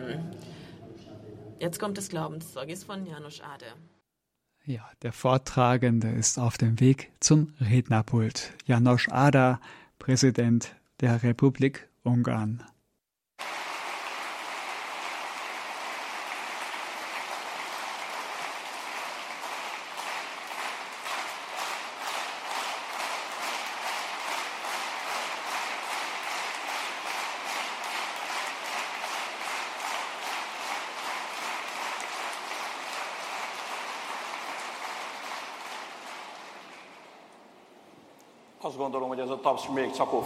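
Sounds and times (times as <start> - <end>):
speech: 1.6 - 4.0, 4.7 - 12.7, 39.6 - 40.2
audience applause: 13.4 - 37.6.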